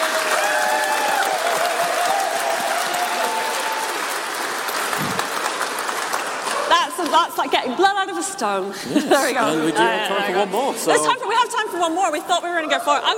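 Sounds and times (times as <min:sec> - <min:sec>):
audience applause: 0:00.0 - 0:07.4
speech: 0:07.1 - 0:13.1.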